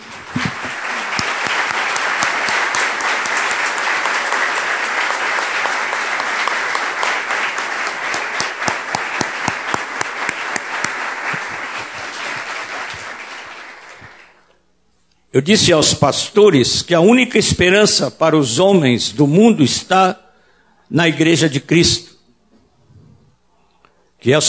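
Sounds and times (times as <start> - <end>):
audience applauding: 0.0 - 14.5
speech: 15.4 - 20.2, 20.9 - 22.0, 24.2 - 24.4.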